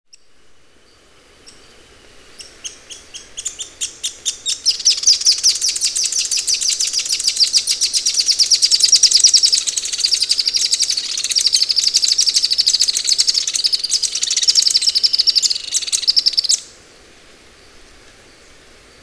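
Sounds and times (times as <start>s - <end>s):
pink-legged graveteiro giving sharp very high ticking notes: 2.4s - 16.7s.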